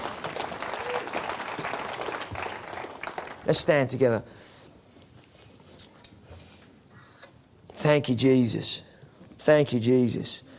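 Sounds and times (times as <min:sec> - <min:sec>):
audience applause: 0:00.0 - 0:03.6
speech: 0:03.5 - 0:04.5, 0:07.8 - 0:08.9, 0:09.5 - 0:10.5.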